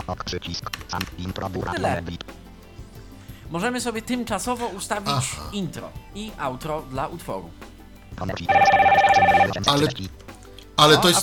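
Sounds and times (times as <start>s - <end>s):
speech: 0.1s - 2.4s, 3.5s - 10.2s, 10.8s - 11.2s
telephone ringing: 8.5s - 9.7s.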